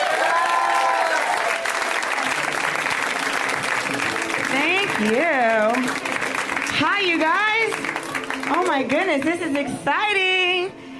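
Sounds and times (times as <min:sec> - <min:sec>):
whoops and cheers: 0:00.0 - 0:02.2
crowd applause for a comedian: 0:00.0 - 0:09.6
speech: 0:05.0 - 0:05.9, 0:08.5 - 0:10.8.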